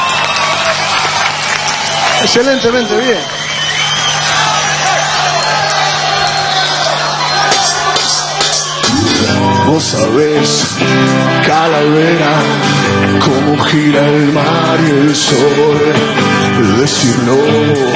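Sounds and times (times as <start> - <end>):
concert audience applauding and cheering: 0.0 - 10.1
speech: 2.2 - 3.4, 9.7 - 17.9.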